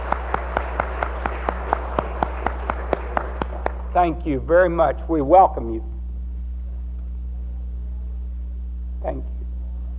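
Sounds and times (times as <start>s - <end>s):
audience applause: 0.0s - 3.9s
constant low hum: 0.0s - 9.9s
speech: 4.0s - 5.9s.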